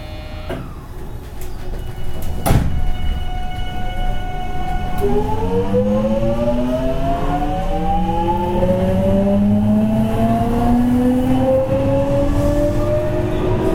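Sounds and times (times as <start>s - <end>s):
207 series local train on the JR Kobe Line rumbling: 0.0s - 13.7s
207 series train rising motor whine: 4.8s - 13.7s.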